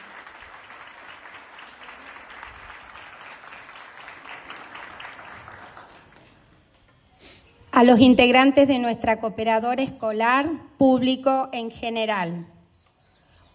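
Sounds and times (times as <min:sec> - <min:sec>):
applause: 0:00.0 - 0:06.9
speech: 0:07.8 - 0:12.6.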